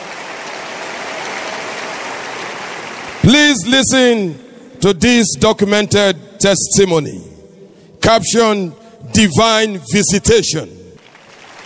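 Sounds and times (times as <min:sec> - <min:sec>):
audience clapping: 0:00.0 - 0:04.0, 0:11.0 - 0:11.6
speech: 0:03.3 - 0:07.3, 0:08.0 - 0:10.8.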